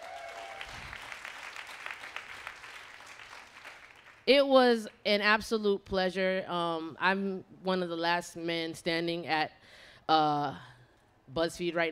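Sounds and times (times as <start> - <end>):
audience clapping and applause: 0.0 - 4.2
speech: 4.3 - 10.7, 11.3 - 11.8.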